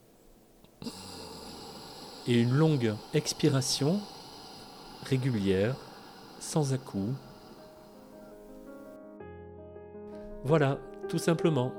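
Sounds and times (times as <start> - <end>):
long slow inhale through the nose with the mouth closed: 0.7 - 8.9
speech: 2.3 - 4.2, 5.0 - 7.3, 10.4 - 11.7.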